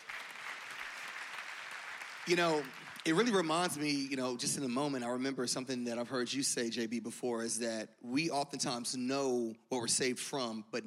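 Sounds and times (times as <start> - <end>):
audience applause: 0.0 - 3.3
speech: 2.3 - 10.8.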